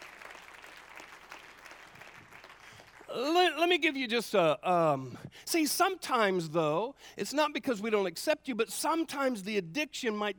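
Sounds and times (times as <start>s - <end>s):
audience clapping hands: 0.0s - 3.2s
speech: 3.1s - 10.3s.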